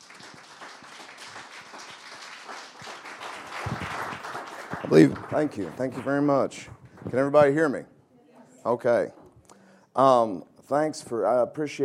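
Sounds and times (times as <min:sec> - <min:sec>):
faint audience applause welcoming a historian: 0:00.0 - 0:07.3
speech: 0:04.9 - 0:07.9, 0:08.6 - 0:09.2, 0:10.0 - 0:11.8.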